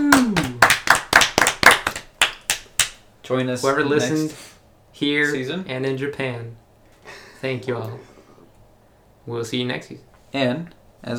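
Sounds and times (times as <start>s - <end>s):
single person clapping: 0.0s - 3.0s
speech: 3.3s - 6.6s, 7.4s - 8.1s, 9.3s - 11.1s.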